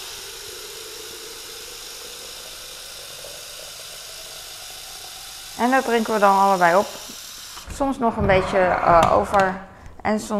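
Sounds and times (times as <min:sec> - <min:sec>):
shower water running: 0:00.0 - 0:08.2
speech: 0:05.6 - 0:07.1, 0:07.8 - 0:10.3.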